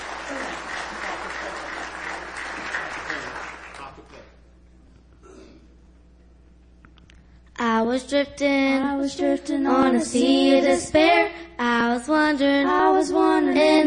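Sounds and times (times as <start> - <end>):
audience applause: 0.0 - 4.2
speech: 7.8 - 13.8.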